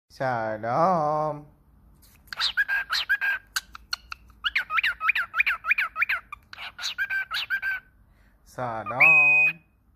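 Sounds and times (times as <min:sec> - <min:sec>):
speech: 0:00.1 - 0:01.6, 0:08.6 - 0:09.6
Cockatiel calls: 0:02.0 - 0:08.0.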